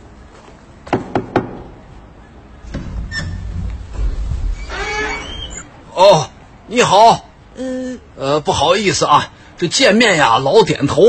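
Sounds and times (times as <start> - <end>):
knocking on a door: 0.9 - 1.8
speech: 6.0 - 11.0.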